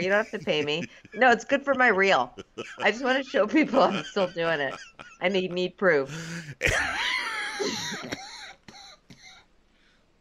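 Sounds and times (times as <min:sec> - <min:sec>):
speech: 0:00.0 - 0:08.2
laughter: 0:00.0 - 0:09.3
smoker's cough: 0:06.2 - 0:09.4.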